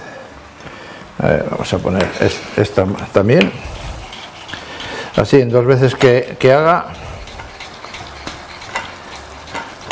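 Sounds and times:
speech: 1.2s - 3.8s, 5.2s - 7.1s
food frying in hot oil: 1.8s - 9.9s.

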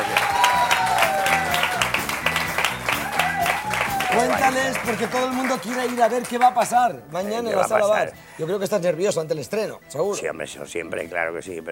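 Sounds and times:
audience applause: 0.0s - 6.7s
speech: 4.2s - 11.6s.

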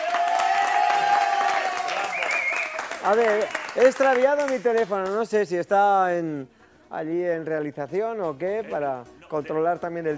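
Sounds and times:
crowd clapping and cheering: 0.0s - 5.3s
sustained whistle-like tone: 2.0s - 2.8s
speech: 3.0s - 10.1s.

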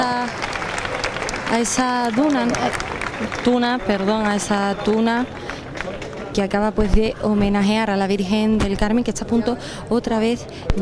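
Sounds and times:
crowd applause for a tuna band: 0.0s - 6.6s
speech: 1.5s - 5.4s, 6.4s - 10.7s.

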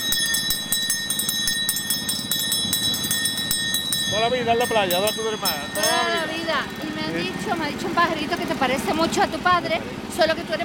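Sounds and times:
ice cream vendor's hand bell ringing: 0.0s - 8.2s
speech: 4.2s - 10.6s.

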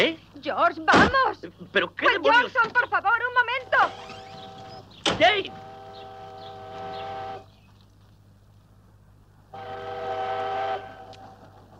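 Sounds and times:
speech: 0.0s - 4.1s, 5.1s - 5.7s
train rumbling: 2.3s - 7.7s, 9.3s - 11.7s
train whistle blasts: 5.3s - 7.5s, 9.6s - 11.4s.

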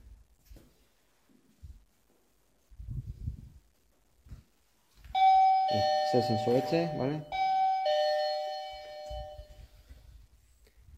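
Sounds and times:
electronic text-message notification tone: 5.6s - 9.4s
speech: 5.7s - 7.4s.

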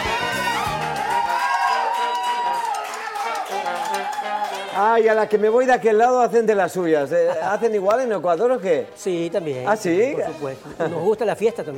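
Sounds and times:
audience applause: 0.0s - 5.6s
speech: 4.8s - 11.7s.

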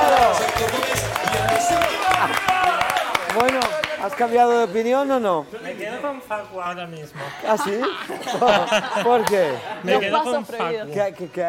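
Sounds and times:
people shouting and cheering: 0.0s - 4.1s
audience applause: 0.0s - 4.3s
speech: 4.1s - 11.4s
laughter: 7.2s - 10.4s.

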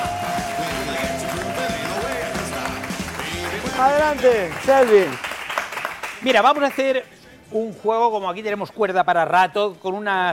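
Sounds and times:
loud music with melodic tone and rhythmic bass line: 0.0s - 4.8s
audience applause: 0.0s - 6.8s
speech: 3.8s - 5.2s, 6.2s - 10.3s.

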